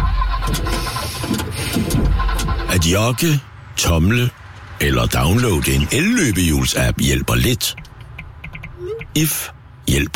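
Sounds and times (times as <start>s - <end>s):
leased car engine failing to start on the Motorring 3: 0.0s - 2.8s
speech: 2.9s - 7.8s, 9.2s - 10.1s.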